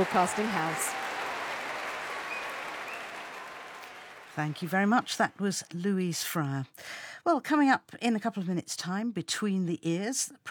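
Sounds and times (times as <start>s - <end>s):
speech: 0.0s - 1.1s, 4.4s - 10.4s
concert audience clapping at the Royal Albert Hall: 0.0s - 5.3s.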